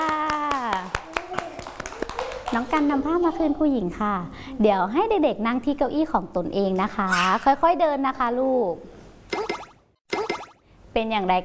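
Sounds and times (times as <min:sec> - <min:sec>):
children clapping for themselves: 0:00.0 - 0:03.0
speech: 0:02.5 - 0:09.0, 0:11.0 - 0:11.4.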